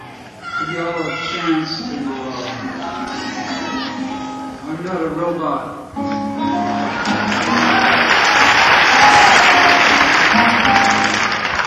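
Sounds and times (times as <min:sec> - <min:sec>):
speech: 0:00.6 - 0:07.7
crowd clapping: 0:06.6 - 0:11.6.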